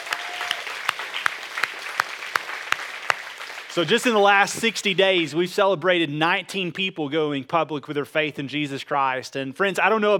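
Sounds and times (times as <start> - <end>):
audience applauding: 0.0 - 4.5
speech: 3.8 - 10.1.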